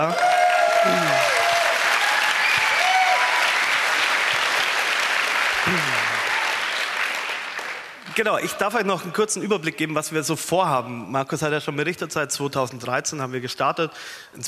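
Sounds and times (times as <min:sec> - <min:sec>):
speech: 0:00.0 - 0:00.2, 0:00.8 - 0:01.4, 0:08.2 - 0:14.4
applause: 0:00.0 - 0:08.7.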